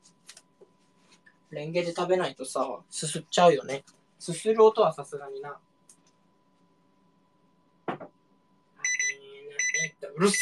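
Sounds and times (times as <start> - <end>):
speech: 1.5 - 5.7, 10.2 - 10.4
microwave oven beeping: 8.8 - 10.4.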